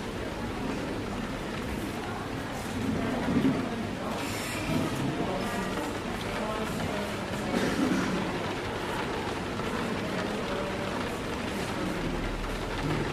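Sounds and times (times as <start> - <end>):
coffee shop customers chattering quietly: 0.0 - 13.1
rain pattering on a coffee shop window: 0.0 - 13.1.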